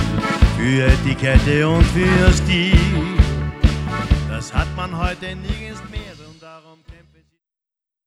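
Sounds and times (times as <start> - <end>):
tango music: 0.0 - 6.1.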